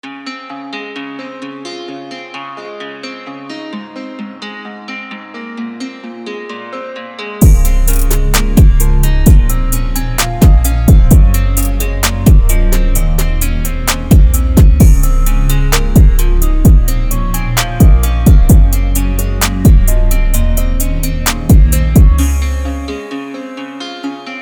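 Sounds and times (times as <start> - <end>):
instrumental type beat: 7.4 - 24.2.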